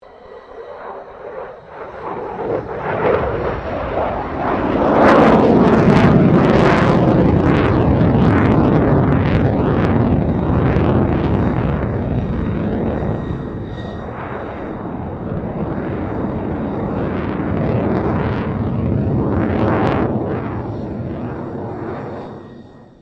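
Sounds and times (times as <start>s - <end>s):
2009 FA-18E Superhornet maneuvering: 0.0s - 22.9s.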